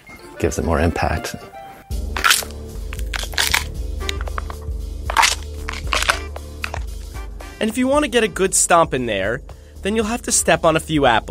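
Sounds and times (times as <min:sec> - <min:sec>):
speech: 0:00.4 - 0:01.6, 0:07.6 - 0:11.2
foley crunch of bone cracking made with celery: 0:02.1 - 0:06.9.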